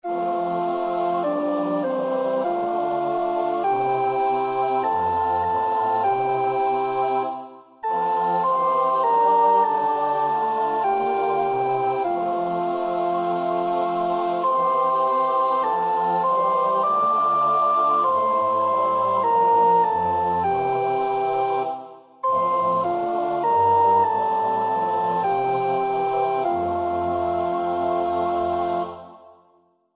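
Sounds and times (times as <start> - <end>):
soprano singing: 0.0 - 29.4.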